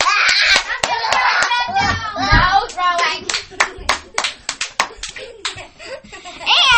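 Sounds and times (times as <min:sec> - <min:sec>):
audience applause: 0:00.0 - 0:01.6, 0:02.8 - 0:05.6
laughter: 0:00.2 - 0:01.9, 0:03.0 - 0:06.6.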